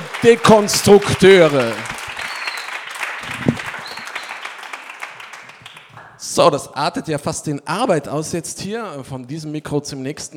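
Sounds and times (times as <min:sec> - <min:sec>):
audience applause: 0:00.0 - 0:06.2
speech: 0:00.2 - 0:02.0, 0:06.4 - 0:10.3.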